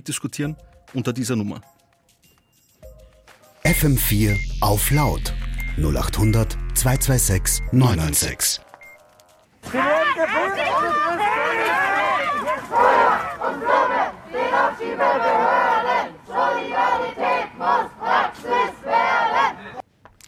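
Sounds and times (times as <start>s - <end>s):
speech: 0.0s - 1.8s, 3.7s - 8.7s
protest crowd chanting against a deportation: 10.0s - 19.8s.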